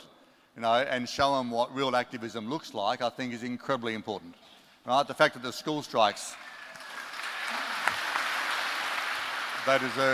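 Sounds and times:
speech: 0.6s - 6.5s, 9.6s - 10.1s
audience applause: 6.3s - 10.1s.

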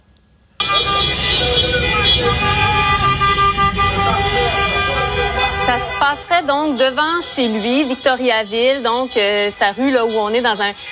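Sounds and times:
dozens of very loud vehicles roaring on a cul-de-sac street in Victoriaville: 0.6s - 10.9s
speech: 6.1s - 10.9s.

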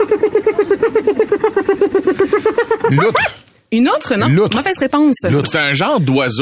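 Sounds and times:
hyena call: 0.0s - 3.4s
speech: 2.9s - 6.4s.

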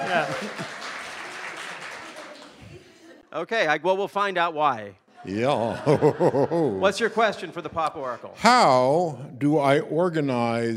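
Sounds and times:
audience applause: 0.0s - 2.9s
laughter: 0.0s - 3.3s, 5.1s - 8.8s
speech: 0.1s - 0.8s, 3.4s - 10.7s.

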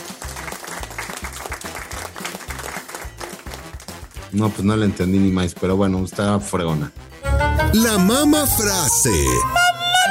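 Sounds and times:
applause: 0.0s - 4.3s
speech: 4.3s - 7.0s, 7.6s - 9.6s.

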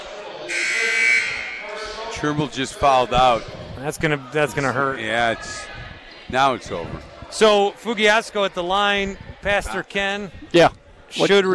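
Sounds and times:
referee's whistle: 0.5s - 1.7s
speech: 2.2s - 5.7s, 6.3s - 11.5s.

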